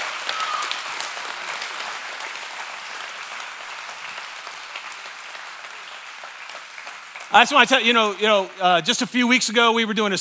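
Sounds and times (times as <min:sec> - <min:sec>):
crowd applauding: 0:00.0 - 0:09.8
speech: 0:07.3 - 0:10.1.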